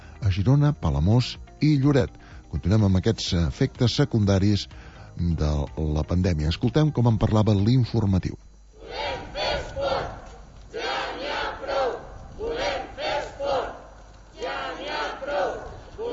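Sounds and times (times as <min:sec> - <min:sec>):
speech: 0:00.3 - 0:08.5
protest crowd shouting a chant: 0:08.8 - 0:16.1.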